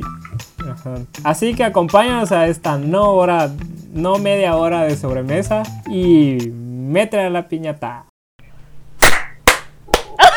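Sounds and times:
speech: 0:00.8 - 0:08.1
hand clapping: 0:09.0 - 0:10.2.

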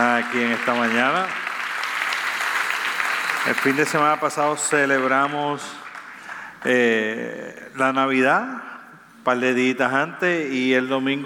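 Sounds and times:
speech: 0:00.0 - 0:01.5, 0:03.4 - 0:05.9, 0:06.6 - 0:11.2
audience applause: 0:00.0 - 0:06.7.

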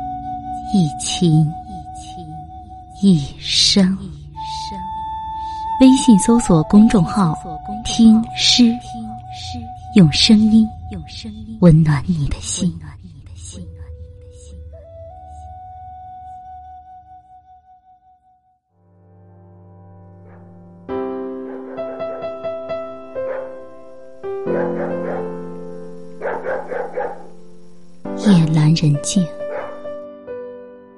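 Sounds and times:
speech: 0:00.7 - 0:02.2, 0:03.0 - 0:04.2, 0:05.8 - 0:12.9, 0:28.8 - 0:29.4
distant dog barking: 0:20.2 - 0:20.6, 0:21.3 - 0:27.4, 0:29.4 - 0:30.0.

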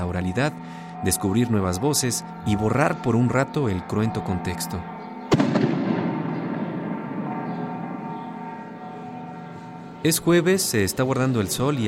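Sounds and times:
speech: 0:00.0 - 0:05.5, 0:10.0 - 0:11.8
noise: 0:00.0 - 0:11.8
firecrackers exploding outside: 0:05.3 - 0:06.6.

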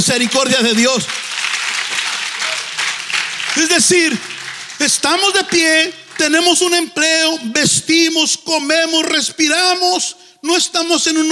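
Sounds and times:
speech: 0:00.0 - 0:01.4, 0:03.6 - 0:11.3
audience applauding: 0:00.0 - 0:06.9.

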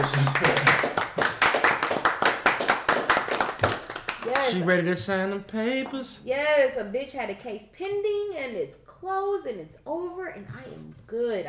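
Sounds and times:
applause: 0:00.0 - 0:04.6
speech: 0:04.5 - 0:11.4.

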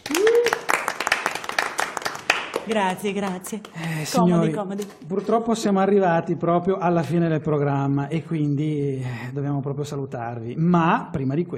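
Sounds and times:
short rising whoop or cheer: 0:00.0 - 0:00.8
crowd applauding: 0:00.0 - 0:04.2
speech: 0:02.7 - 0:11.5.

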